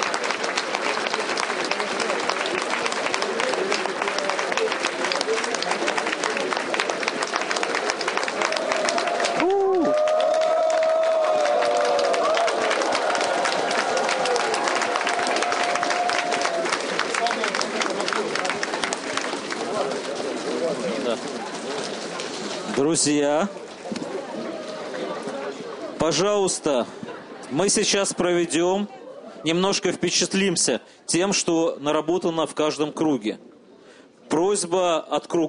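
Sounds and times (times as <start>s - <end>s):
workshop participants clapping: 0.0s - 26.8s
speech: 23.0s - 23.6s, 26.1s - 33.5s, 34.6s - 35.4s.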